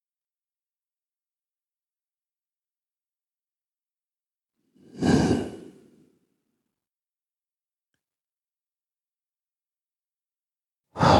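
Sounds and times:
person breathing in deeply: 0:04.8 - 0:06.1, 0:11.0 - 0:11.1.

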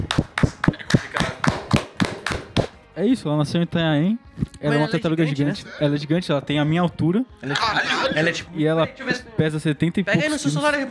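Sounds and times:
applause: 0:00.0 - 0:02.7
speech: 0:03.0 - 0:10.8.

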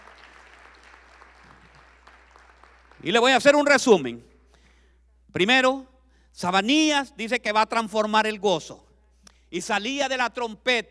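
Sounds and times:
audience applause: 0:00.0 - 0:03.2
speech: 0:03.0 - 0:04.3, 0:05.3 - 0:08.9, 0:09.5 - 0:10.8.

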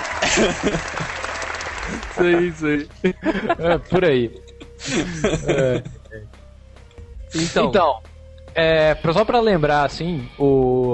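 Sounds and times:
sitcom audience applause: 0:00.0 - 0:02.8
laughter: 0:00.0 - 0:06.2
speech: 0:00.2 - 0:01.2, 0:01.9 - 0:06.4, 0:07.3 - 0:10.9.

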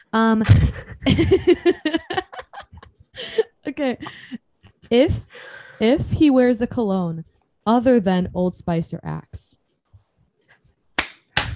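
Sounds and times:
speech: 0:00.1 - 0:02.0, 0:03.8 - 0:09.6
laughter: 0:00.4 - 0:05.0
hand clapping: 0:11.0 - 0:11.5.

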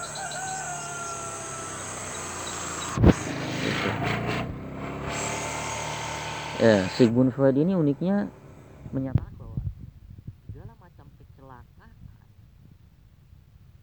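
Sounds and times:
motorcycle passing by: 0:00.0 - 0:09.9
speech: 0:06.6 - 0:09.3.

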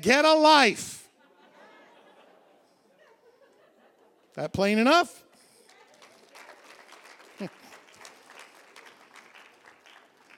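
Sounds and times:
speech: 0:00.0 - 0:00.9, 0:04.4 - 0:05.2
laughter: 0:01.1 - 0:04.4, 0:07.3 - 0:07.9
audience clapping: 0:05.6 - 0:10.3.

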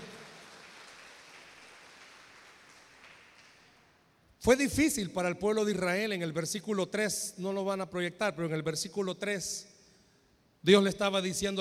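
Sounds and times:
audience applauding: 0:00.0 - 0:04.0
speech: 0:04.4 - 0:09.7, 0:10.6 - 0:11.5.

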